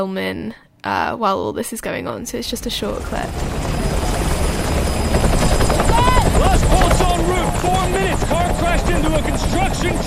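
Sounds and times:
speech: 0.0 - 3.8, 7.3 - 10.0
helicopter rotor thump and engine roar: 2.4 - 10.0.

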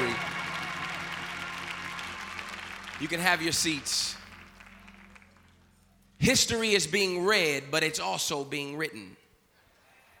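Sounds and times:
audience applause: 0.0 - 5.8
speech: 3.0 - 4.2, 6.2 - 9.2.

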